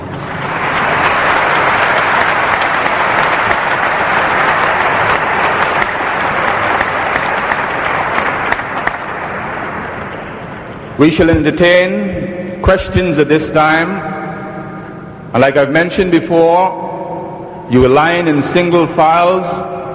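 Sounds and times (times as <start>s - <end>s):
audience applause: 0.0s - 10.7s
speech: 11.0s - 14.1s, 15.3s - 16.8s, 17.7s - 19.7s.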